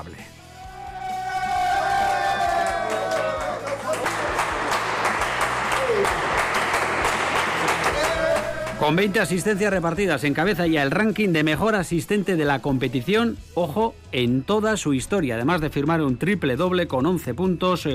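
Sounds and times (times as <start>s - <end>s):
whoops and high cheering shouts: 0.6s - 4.4s, 7.2s - 8.8s
teammates applauding: 1.4s - 9.7s
speech: 8.9s - 17.9s.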